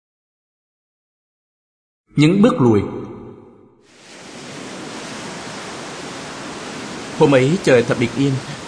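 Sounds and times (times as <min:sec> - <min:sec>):
speech: 0:02.2 - 0:03.0, 0:07.2 - 0:08.6
ocean waves rushing onto sandy shore: 0:03.9 - 0:08.6.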